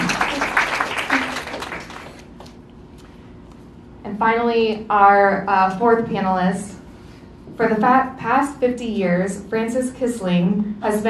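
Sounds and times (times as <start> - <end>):
audience applause: 0.0 - 2.3
speech: 4.2 - 6.8, 7.6 - 11.0.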